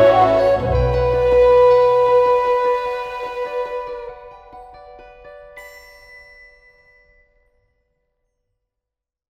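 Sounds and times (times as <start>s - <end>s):
low whistle: 0.0s - 4.5s.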